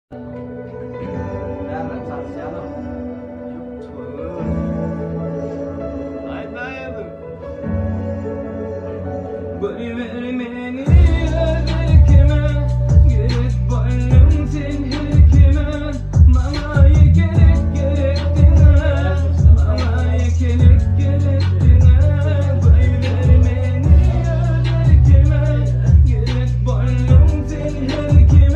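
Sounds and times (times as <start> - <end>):
Turkmen rap: 9.6 - 28.5.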